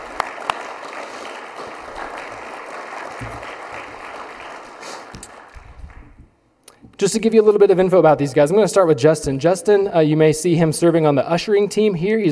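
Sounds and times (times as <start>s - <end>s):
audience clapping: 0.0s - 6.4s
speech: 7.0s - 12.3s.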